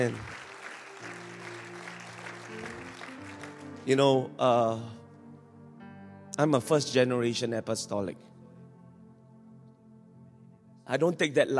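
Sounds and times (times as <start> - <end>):
speech: 0.0 - 0.3, 3.9 - 5.0, 6.4 - 8.3, 10.9 - 11.5
church congregation clapping: 0.0 - 4.2.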